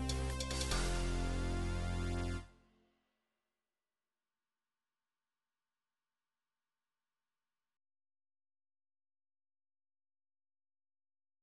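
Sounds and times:
MIDI euro beat show opening music: 0:00.0 - 0:01.8.

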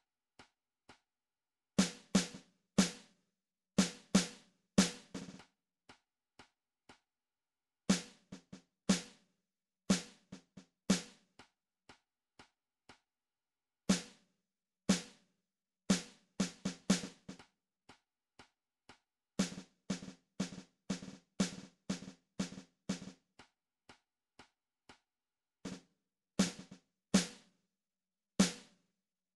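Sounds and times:
snare drum: 0:01.8 - 0:03.1, 0:03.8 - 0:05.4, 0:07.9 - 0:09.2, 0:09.9 - 0:11.2, 0:13.9 - 0:14.2, 0:14.9 - 0:15.2, 0:15.9 - 0:17.4, 0:19.4 - 0:23.2, 0:26.4 - 0:27.5, 0:28.4 - 0:28.8.

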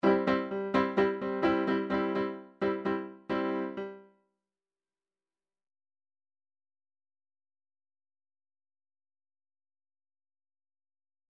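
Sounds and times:
tango chord lines: 0:00.0 - 0:04.0.

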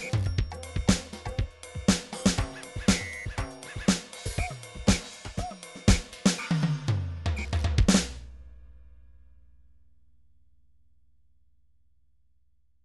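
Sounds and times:
pop drum grooves from MIDI loops: 0:00.0 - 0:08.2.

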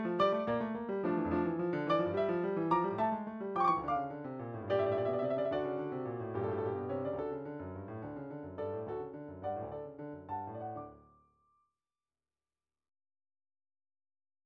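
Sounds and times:
midi piano studies: 0:00.0 - 0:11.1.

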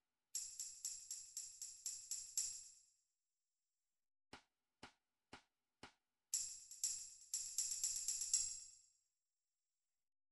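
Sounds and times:
tambourine: 0:00.3 - 0:02.9, 0:06.3 - 0:08.9.

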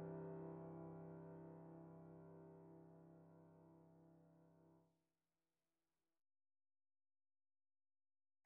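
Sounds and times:
short midi piano pieces: 0:00.0 - 0:04.6.

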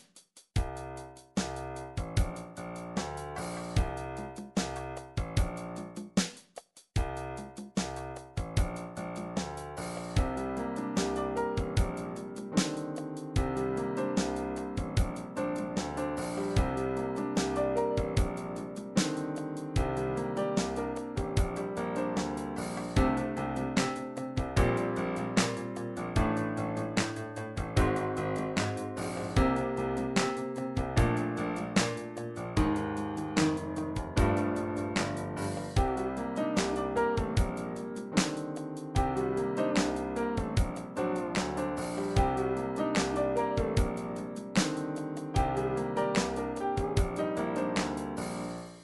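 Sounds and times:
trip hop music: 0:00.7 - 0:06.2, 0:07.1 - 0:48.7.

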